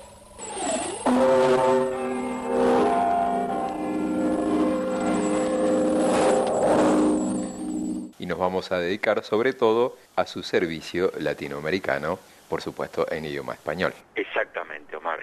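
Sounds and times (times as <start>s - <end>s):
Big Ben clock tower chimes: 0.5s - 8.1s
speech: 1.1s - 1.4s, 8.5s - 15.2s.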